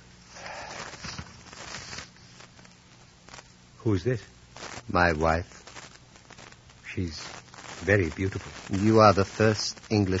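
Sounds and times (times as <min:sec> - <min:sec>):
brown envelope opened with crisp paper rustling and tearing: 0:00.7 - 0:02.1
speech: 0:03.8 - 0:05.6, 0:07.0 - 0:10.1.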